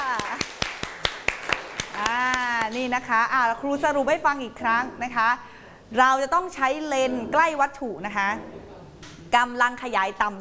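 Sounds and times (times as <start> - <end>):
classroom clapping: 0.0 - 2.9
speech: 2.7 - 8.6, 9.3 - 10.3.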